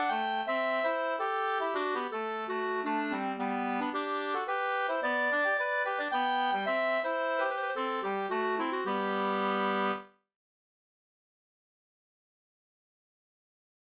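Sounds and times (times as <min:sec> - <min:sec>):
two-part polska: 0:00.0 - 0:10.1.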